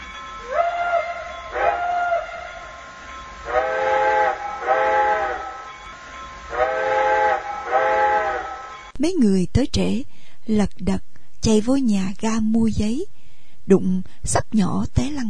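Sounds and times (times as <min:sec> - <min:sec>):
steam train whistle at a station: 0:00.0 - 0:08.9
speech: 0:09.0 - 0:13.1, 0:13.7 - 0:15.2.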